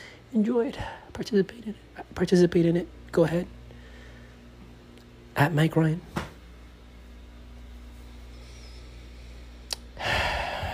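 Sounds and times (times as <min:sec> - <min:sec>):
speech: 0:00.3 - 0:03.6, 0:05.4 - 0:06.2
sharp intake of breath: 0:08.3 - 0:10.7.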